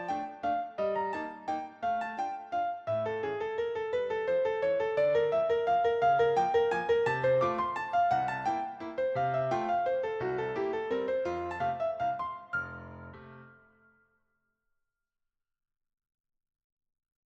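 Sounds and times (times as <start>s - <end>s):
waltz in F: 0.0s - 13.5s.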